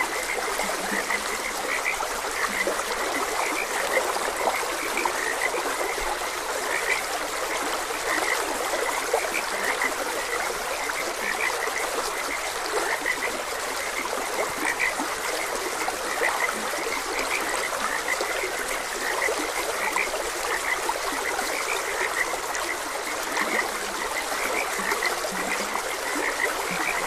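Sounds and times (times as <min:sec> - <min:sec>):
chorus of croaking frogs: 0:00.0 - 0:27.0
trickling stream water: 0:00.0 - 0:27.0.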